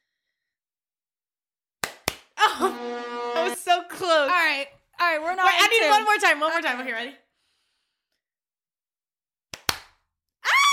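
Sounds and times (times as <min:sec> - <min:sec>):
two people clapping hands: 0:01.8 - 0:02.4, 0:09.5 - 0:10.1
speech: 0:02.5 - 0:02.9, 0:03.6 - 0:07.2.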